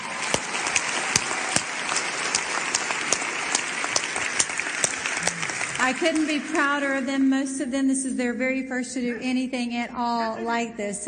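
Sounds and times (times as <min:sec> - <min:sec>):
round of applause: 0:00.0 - 0:07.5
speech: 0:05.9 - 0:11.0.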